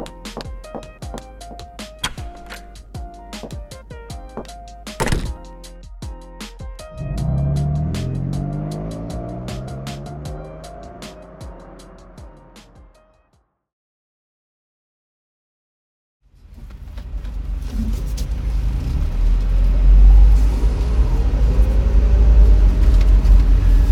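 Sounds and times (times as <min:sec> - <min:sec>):
car engine rumble pulling up: 0:06.8 - 0:12.2, 0:16.6 - 0:23.8.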